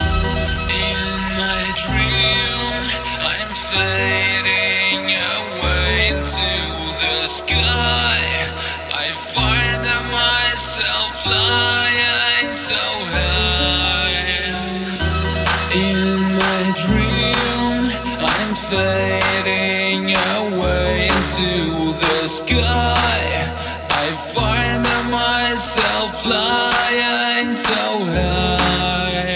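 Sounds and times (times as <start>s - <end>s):
house music grooves: 0.0s - 29.3s.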